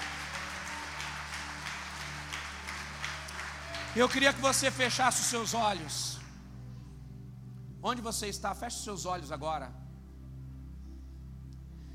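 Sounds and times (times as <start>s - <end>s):
audience applauding: 0.0s - 6.3s
sustained low musical drone: 0.0s - 11.9s
speech: 3.9s - 6.2s, 7.8s - 9.8s.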